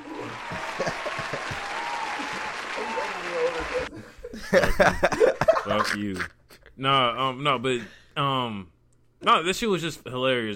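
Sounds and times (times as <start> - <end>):
applause: 0.0 - 3.9
laughter: 0.0 - 6.4
speech: 4.5 - 10.5.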